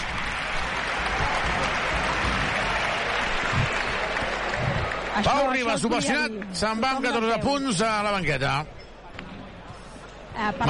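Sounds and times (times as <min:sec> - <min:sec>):
arena crowd ovation: 0:00.0 - 0:06.5
speech: 0:05.2 - 0:08.8, 0:10.4 - 0:10.6.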